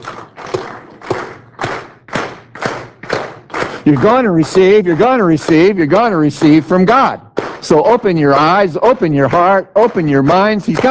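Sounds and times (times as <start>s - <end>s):
crowd clapping in a steady rhythm: 0.0s - 10.9s
speech: 3.9s - 10.9s.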